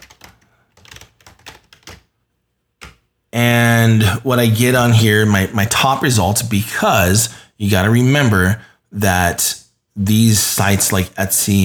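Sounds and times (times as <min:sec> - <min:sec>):
typing a search on a computer keyboard: 0:00.0 - 0:02.1
speech: 0:03.4 - 0:11.6.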